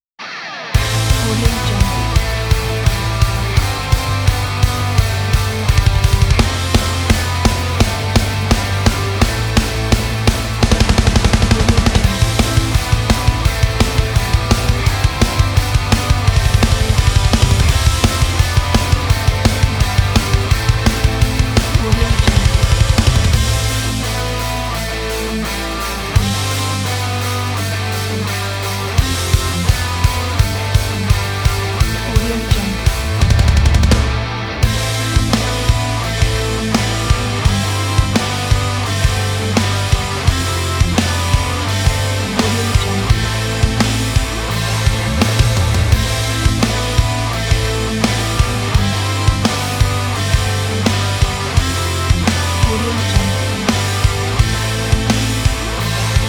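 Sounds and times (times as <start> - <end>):
punk music: 0.2 - 56.2.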